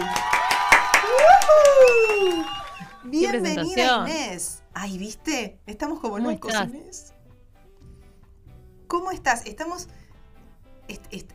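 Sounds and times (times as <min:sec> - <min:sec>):
applause from a small group: 0:00.0 - 0:03.6
person whooping: 0:00.0 - 0:03.7
speech: 0:03.4 - 0:07.2, 0:08.9 - 0:10.0, 0:10.9 - 0:11.3.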